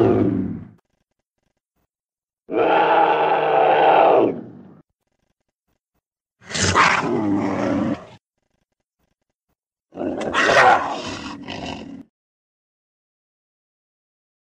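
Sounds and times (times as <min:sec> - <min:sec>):
cougar yowling: 0:02.5 - 0:04.5, 0:06.4 - 0:08.1, 0:10.0 - 0:11.9.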